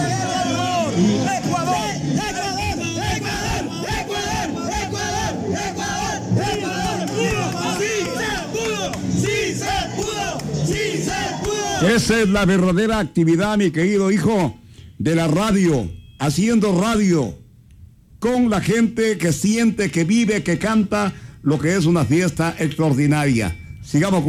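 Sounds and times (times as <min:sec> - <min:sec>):
crowd of fans chanting a battle cry in unison: 0:00.0 - 0:12.0
crowd noise: 0:00.0 - 0:24.2
speech: 0:11.8 - 0:17.4, 0:18.2 - 0:24.2.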